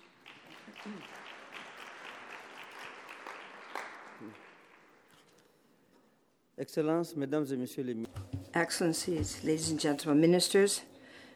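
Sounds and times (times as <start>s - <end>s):
audience applause: 0.0s - 4.9s
speech: 0.7s - 1.2s, 4.2s - 4.5s, 6.6s - 10.9s.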